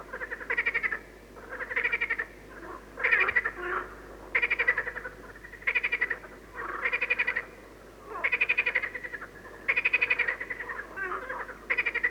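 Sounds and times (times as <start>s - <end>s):
frogs croaking in nature: 0.0s - 12.0s.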